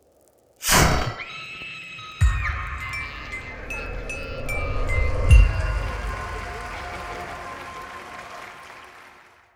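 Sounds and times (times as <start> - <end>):
jingle: 2.1 - 7.4.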